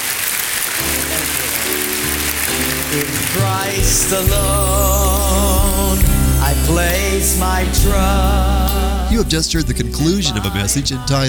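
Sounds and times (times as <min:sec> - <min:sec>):
congregation clapping: 0:00.0 - 0:03.9
speech: 0:02.9 - 0:11.2.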